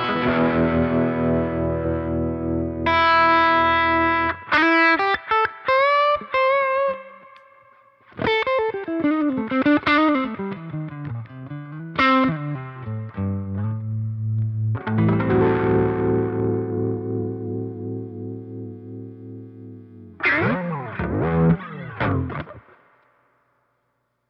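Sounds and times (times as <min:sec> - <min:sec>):
fuzz guitar: 0:00.0 - 0:23.0.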